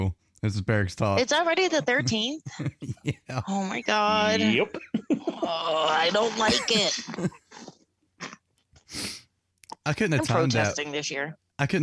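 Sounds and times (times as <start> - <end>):
speech: 0.0 - 7.4, 9.8 - 11.8
laughter: 1.8 - 3.5, 4.1 - 7.7, 10.0 - 10.8
coughing: 4.1 - 8.4, 9.8 - 10.8.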